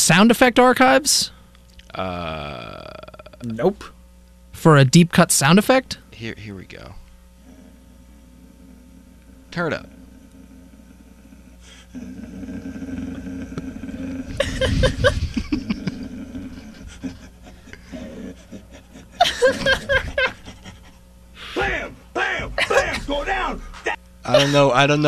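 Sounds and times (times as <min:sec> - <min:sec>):
speech: 0:00.0 - 0:04.0, 0:04.6 - 0:07.0, 0:09.5 - 0:10.0, 0:11.9 - 0:12.9, 0:23.1 - 0:25.0
low steady hum: 0:00.0 - 0:25.0
man imitating dog noises: 0:08.5 - 0:11.6, 0:12.2 - 0:19.0, 0:21.6 - 0:24.0
laughter: 0:14.2 - 0:21.0, 0:21.6 - 0:24.8.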